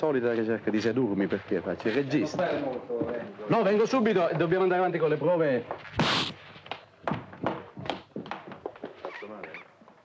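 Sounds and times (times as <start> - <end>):
speech: 0.0 - 6.4
slap: 6.0 - 6.4.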